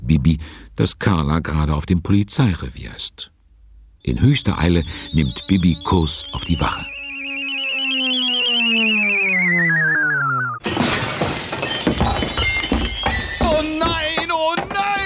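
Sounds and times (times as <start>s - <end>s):
speech: 0.1s - 3.4s, 4.0s - 7.0s
sustained wavering tone: 4.0s - 10.6s
glass window pane shattering as a radio play sound effect: 10.6s - 14.2s.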